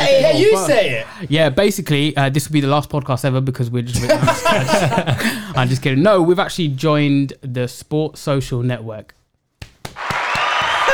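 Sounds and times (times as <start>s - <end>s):
speech: 0.4s - 9.2s
laughter: 4.0s - 5.9s
sharp hand claps: 9.6s - 10.9s
loud crackling burst of applause: 9.8s - 10.9s.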